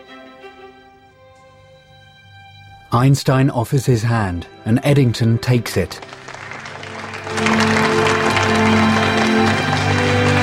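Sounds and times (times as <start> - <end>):
speech: 2.9 - 6.2
applause honoring Eddington and Einstein: 5.6 - 10.4.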